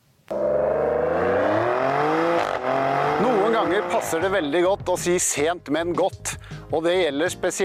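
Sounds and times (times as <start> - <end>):
Maserati Grecale Trofeo Italian compact performance SUV engine revving: 0.3 - 4.5
speech: 3.6 - 7.6.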